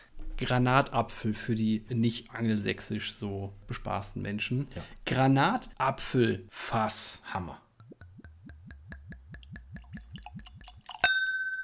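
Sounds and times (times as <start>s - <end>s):
speech: 0.4s - 7.6s
liquid glugging out of a full bottle: 7.8s - 11.1s.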